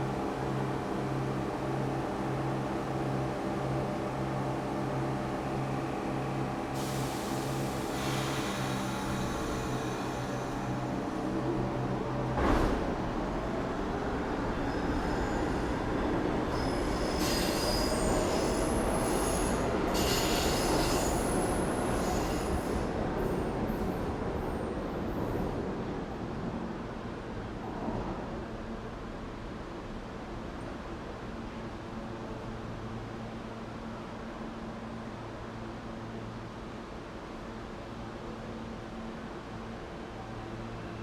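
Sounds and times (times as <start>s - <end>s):
subway station ambience in New York City: 0.0s - 41.0s.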